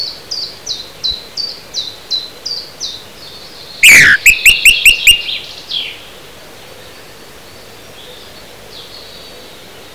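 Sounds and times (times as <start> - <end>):
song thrush song of loud sharp repeated notes: 3.8 - 5.2.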